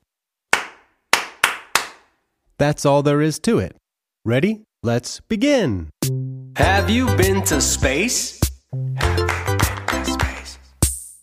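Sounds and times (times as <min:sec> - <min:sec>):
hands clapping a rhythm: 0:00.5 - 0:02.1, 0:06.6 - 0:11.2
speech: 0:02.6 - 0:09.4.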